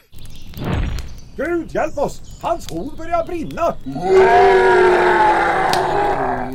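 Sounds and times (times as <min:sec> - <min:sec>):
speech: 0:01.4 - 0:05.3
moose roaring: 0:03.9 - 0:06.5.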